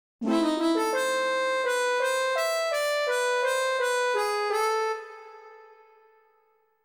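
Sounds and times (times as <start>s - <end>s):
harmonica: 0.2s - 5.5s.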